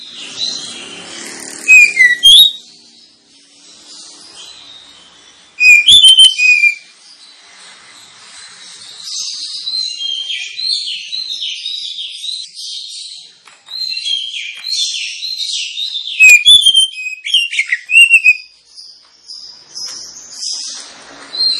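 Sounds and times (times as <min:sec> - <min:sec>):
Oriental magpie-robin singing: 0:00.0 - 0:07.4, 0:08.4 - 0:21.5
quiet high bird chatter: 0:00.0 - 0:21.5.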